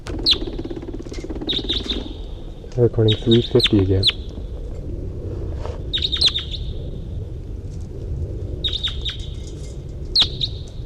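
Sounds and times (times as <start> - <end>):
wild birds chirping: 0.0 - 4.7, 5.8 - 7.0, 8.6 - 9.5, 10.1 - 10.8
low rumbling hum: 0.0 - 10.8
speech: 2.8 - 4.2.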